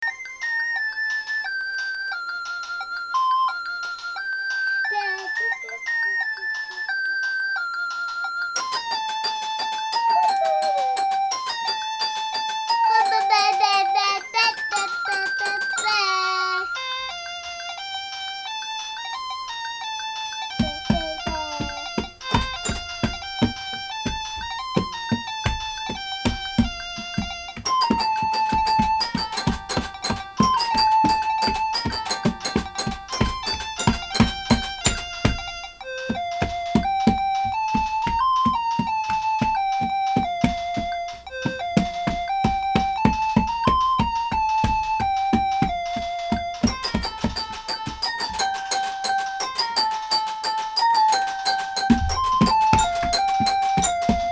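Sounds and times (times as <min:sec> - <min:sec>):
child's Casiotone keyboard: 0:00.0 - 0:54.3
toy piano: 0:00.0 - 0:54.3.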